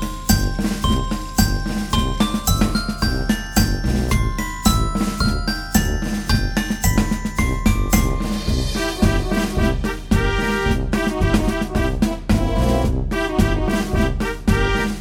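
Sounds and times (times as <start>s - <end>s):
chime bars playing: 0.0s - 9.5s
musical accompaniment: 0.0s - 14.9s.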